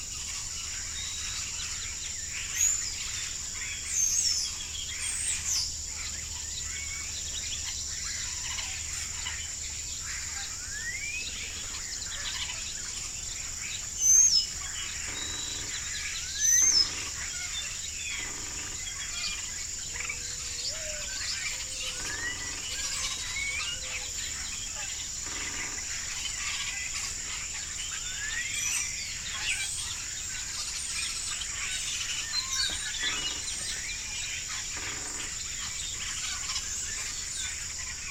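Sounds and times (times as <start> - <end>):
birds dawn chorus on a farm in early morning: 0.0 - 38.0.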